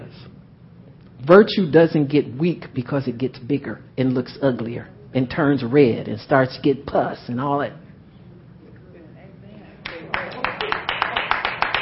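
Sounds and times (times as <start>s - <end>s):
speech: 1.2s - 7.8s
weak hand clapping: 9.8s - 11.8s.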